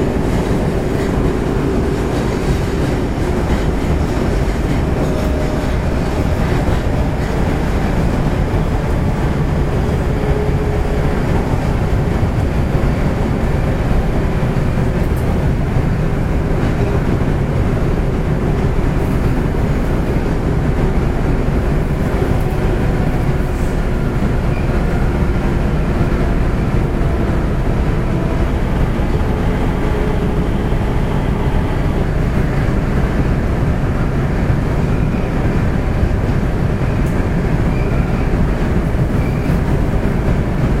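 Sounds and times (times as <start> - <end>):
Osaka city subway 30000 series train running: 0.0 - 40.7.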